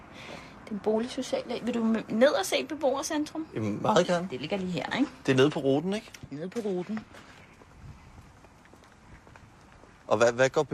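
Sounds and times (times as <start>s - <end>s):
speech: 0.7s - 7.3s, 10.1s - 10.7s
people's footsteps walking outdoors on hard ground: 6.1s - 10.1s.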